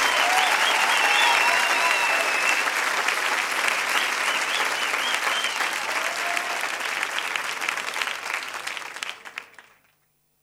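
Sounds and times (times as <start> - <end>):
loud audience applause: 0.0 - 9.8.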